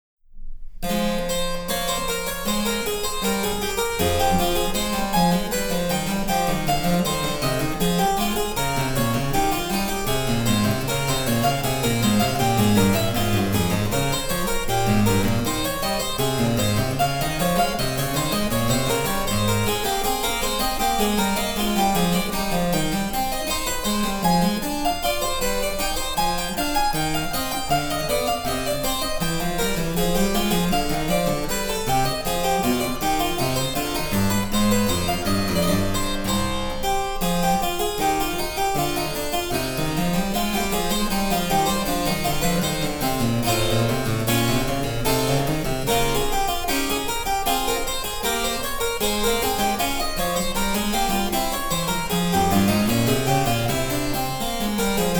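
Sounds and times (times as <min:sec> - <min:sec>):
harpsichord: 0:00.8 - 0:55.1.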